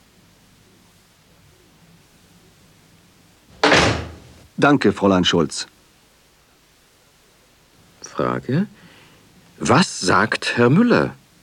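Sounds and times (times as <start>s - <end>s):
low steady hiss: 0.0s - 11.4s
door closing thud: 3.5s - 4.5s
speech: 4.6s - 5.7s, 8.2s - 8.8s, 9.6s - 11.2s.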